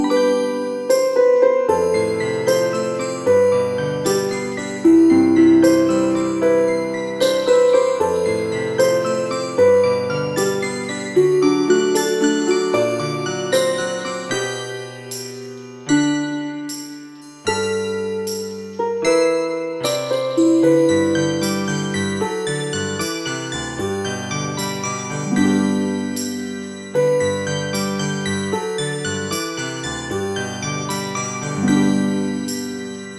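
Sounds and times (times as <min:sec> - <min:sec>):
healing music: 0:00.0 - 0:33.1.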